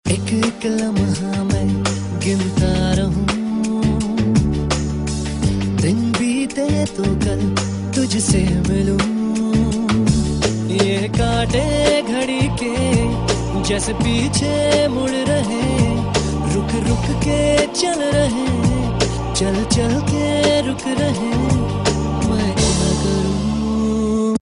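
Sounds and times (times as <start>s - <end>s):
man's voice: 0.1s - 4.7s, 5.7s - 24.4s.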